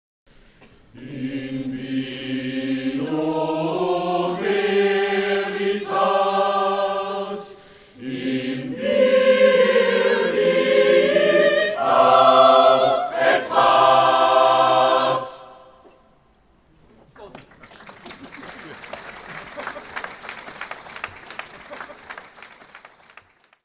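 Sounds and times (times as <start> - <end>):
choir singing a toast: 0.9 - 16.1
laughter: 17.2 - 22.4.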